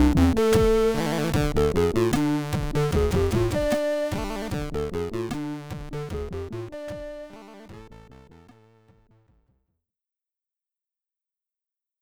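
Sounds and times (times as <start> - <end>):
stereo SID chip boss battle game music: 0.0 - 8.5.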